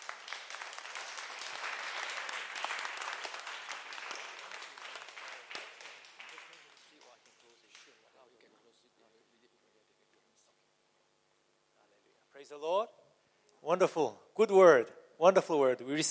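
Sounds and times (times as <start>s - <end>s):
audience clapping: 0.0s - 8.0s
speech: 12.4s - 12.9s, 13.6s - 16.0s.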